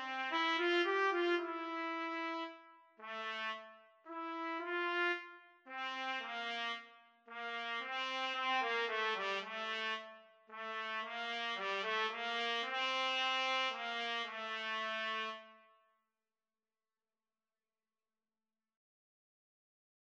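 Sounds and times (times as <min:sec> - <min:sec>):
trumpet duet: 0:00.0 - 0:15.6.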